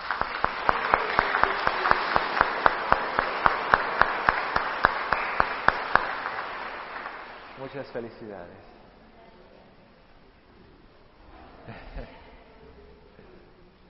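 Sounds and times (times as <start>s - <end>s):
audience applauding: 0.0s - 8.2s
speech: 7.7s - 8.8s.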